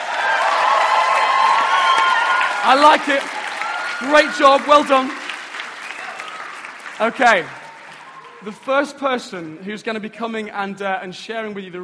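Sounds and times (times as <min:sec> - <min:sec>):
church congregation whoops, shouts and applause in a practice cheer: 0:00.0 - 0:08.6
speech: 0:02.6 - 0:03.4, 0:04.0 - 0:05.2, 0:07.0 - 0:07.6, 0:08.4 - 0:11.8.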